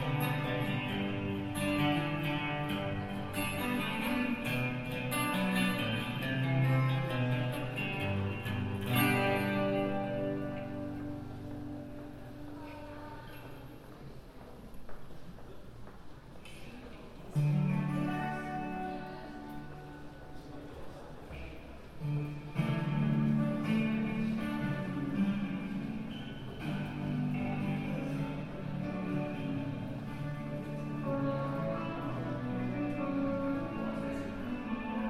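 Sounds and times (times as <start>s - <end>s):
crowd murmur in London on New Year's Eve: 0.0s - 35.0s.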